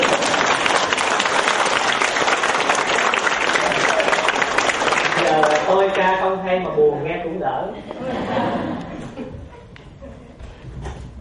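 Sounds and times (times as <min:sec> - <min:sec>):
audience applause after a song: 0:00.0 - 0:06.0
speech: 0:06.0 - 0:09.4
laughter: 0:07.8 - 0:10.6.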